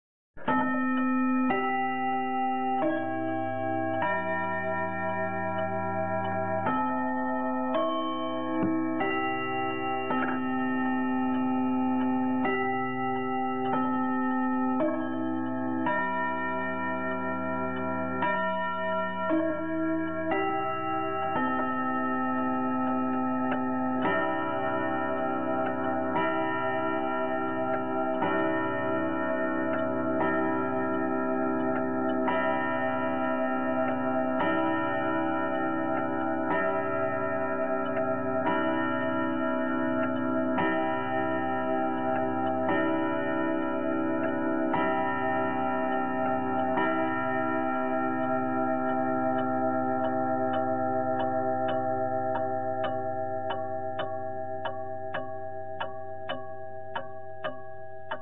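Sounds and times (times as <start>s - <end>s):
longcase clock striking midnight: 0.4s - 58.2s.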